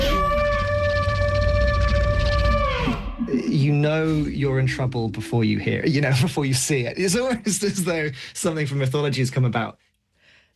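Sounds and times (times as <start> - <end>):
crane call pitched down into a dinosaur roar: 0.0 - 6.2
deep rumbling layer: 0.0 - 7.4
speech: 3.8 - 9.9.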